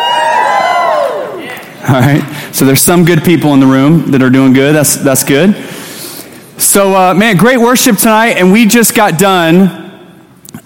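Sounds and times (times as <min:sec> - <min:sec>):
crowd yelling and cheering: 0:00.0 - 0:01.9
speech: 0:01.9 - 0:05.8, 0:06.6 - 0:09.8.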